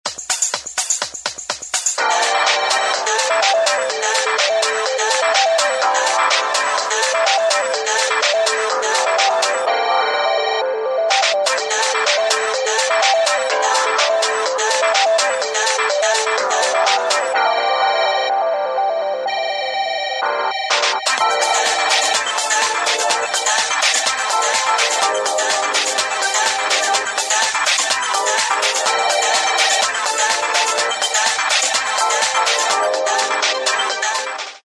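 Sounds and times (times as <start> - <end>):
ringtone: 2.0 - 34.6.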